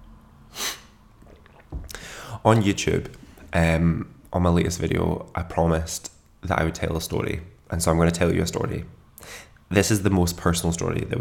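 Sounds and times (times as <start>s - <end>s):
person sipping coffee: 0.6s - 2.3s
speech: 2.4s - 11.2s.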